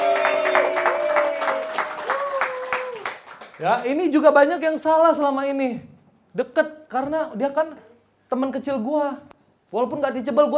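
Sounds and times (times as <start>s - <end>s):
audience applause: 0.0s - 3.8s
speech: 3.6s - 10.5s.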